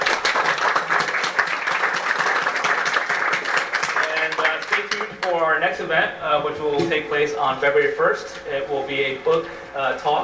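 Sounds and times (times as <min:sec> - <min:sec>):
audience applause: 0:00.0 - 0:05.1
speech: 0:04.8 - 0:10.2.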